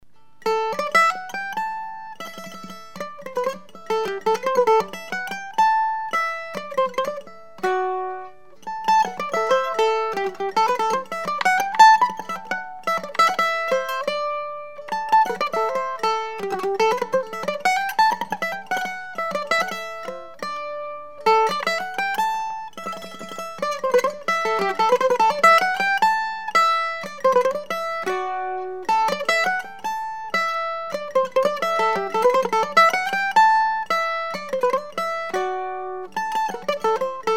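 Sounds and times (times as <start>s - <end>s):
Swedish classical mandolin waltz: 0.0s - 37.3s.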